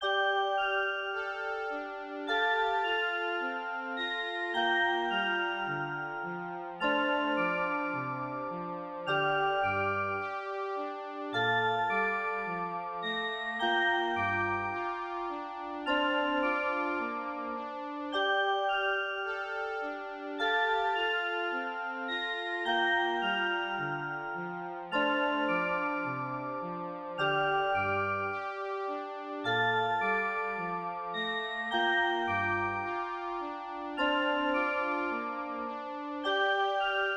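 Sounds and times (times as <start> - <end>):
jingle: 0.0 - 37.1.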